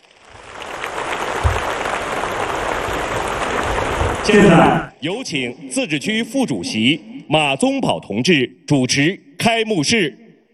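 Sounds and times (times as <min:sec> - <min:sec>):
crowd applause: 0:00.0 - 0:04.9
speech: 0:04.2 - 0:10.2.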